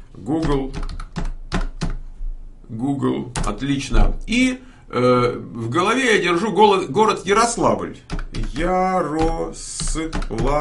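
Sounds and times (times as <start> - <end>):
speech: 0.2 - 0.9, 2.8 - 10.5
typing a search on a computer keyboard: 0.4 - 2.0, 3.4 - 3.6, 8.0 - 10.5.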